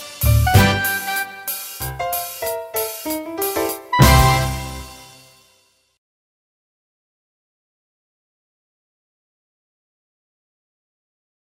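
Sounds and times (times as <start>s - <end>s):
instrumental opening song: 0.0s - 5.7s.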